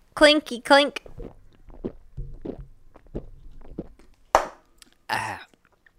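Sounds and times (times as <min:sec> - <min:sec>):
speech: 0:00.2 - 0:01.4
person chugging a carbonated beer: 0:01.1 - 0:04.2.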